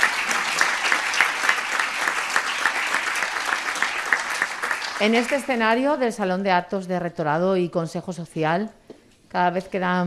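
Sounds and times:
audience applause: 0:00.0 - 0:05.6
speech: 0:05.0 - 0:10.0.

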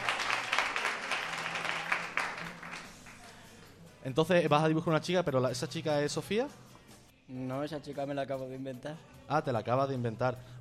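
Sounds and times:
audience applause: 0:00.0 - 0:03.4
speech: 0:04.0 - 0:06.7, 0:07.3 - 0:10.5.

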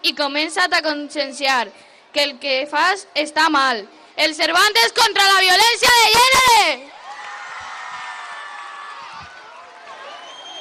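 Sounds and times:
speech: 0:00.1 - 0:06.9
audience applause and cheering: 0:06.9 - 0:10.5.

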